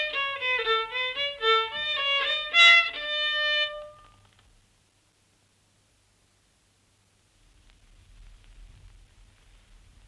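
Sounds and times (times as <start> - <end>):
folk violin tune: 0.0 - 4.2.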